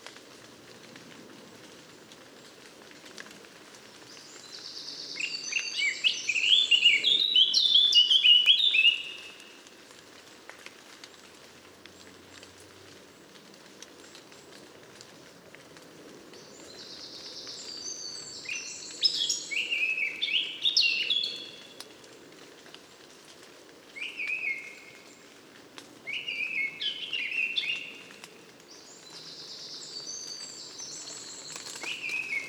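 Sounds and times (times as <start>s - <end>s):
background hiss: 3.5s - 15.0s, 16.0s - 32.4s
Eurasian blackcap song: 4.1s - 9.5s, 16.4s - 21.8s, 26.1s - 32.4s.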